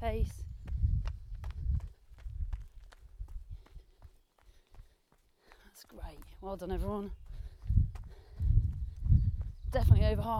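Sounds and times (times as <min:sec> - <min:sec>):
speech: 0:00.1 - 0:00.5, 0:05.8 - 0:07.2, 0:09.7 - 0:10.3
running footsteps of a beginner jogger going up a hill: 0:00.1 - 0:10.3.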